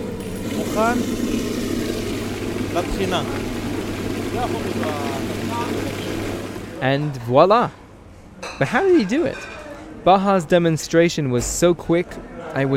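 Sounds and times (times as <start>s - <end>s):
grinding machine blending chickpeas into hummus: 0.0s - 6.8s
speech: 0.8s - 1.2s, 2.8s - 3.6s, 4.3s - 5.9s, 6.8s - 7.8s, 8.5s - 12.7s.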